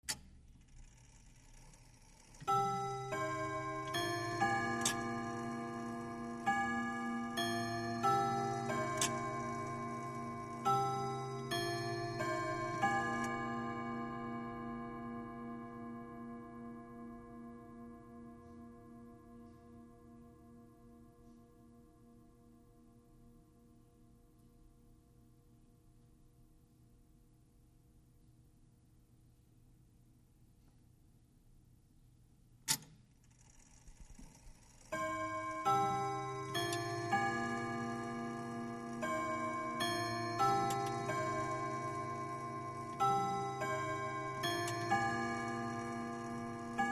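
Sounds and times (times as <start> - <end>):
grandfather clock chime melody: 2.4 - 22.2, 34.9 - 46.9.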